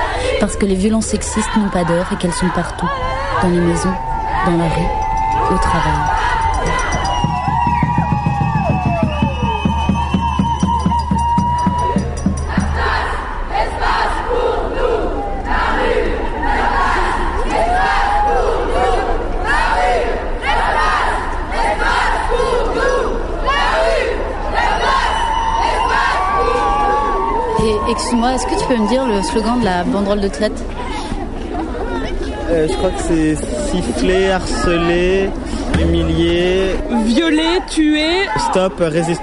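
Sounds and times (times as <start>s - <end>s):
crowd of demonstrators chanting at a night street demonstration: 0.0s - 38.6s
speech: 0.4s - 6.4s, 28.1s - 30.8s, 32.5s - 39.2s
shouts and whoops: 2.9s - 12.9s, 24.6s - 29.8s.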